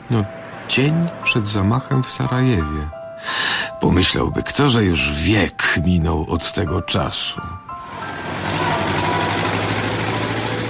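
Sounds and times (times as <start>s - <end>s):
speech: 0.1s - 7.7s
vintage car engine idling: 7.8s - 10.6s.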